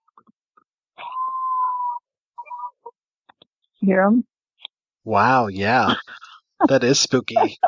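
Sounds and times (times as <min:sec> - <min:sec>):
coyote yips and yelps: 0:01.0 - 0:02.9
speech: 0:03.8 - 0:04.3, 0:05.0 - 0:06.0, 0:06.6 - 0:07.6
laughter: 0:05.6 - 0:07.6.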